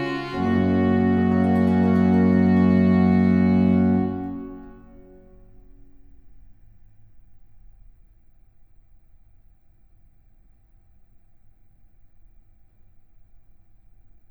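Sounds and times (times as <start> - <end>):
trio sonata in G minor: 0.0 - 5.5.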